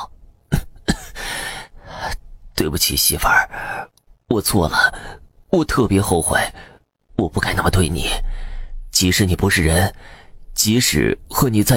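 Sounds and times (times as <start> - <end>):
person coughing: 0.5 - 1.3
speech: 2.6 - 8.4, 9.0 - 11.7.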